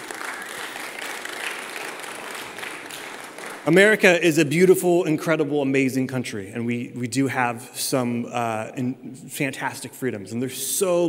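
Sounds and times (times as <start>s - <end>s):
audience applause and clapping: 0.0s - 4.2s
speech: 3.6s - 11.0s.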